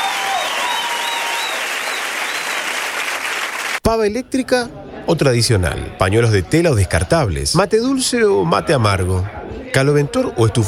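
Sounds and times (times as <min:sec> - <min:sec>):
audience applause: 0:00.0 - 0:03.8
speech: 0:03.9 - 0:10.6.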